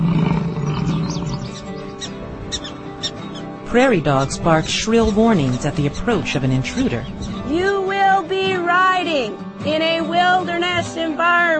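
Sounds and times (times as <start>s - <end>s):
bison bull bellowing: 0.0s - 7.6s
speech: 3.7s - 11.5s.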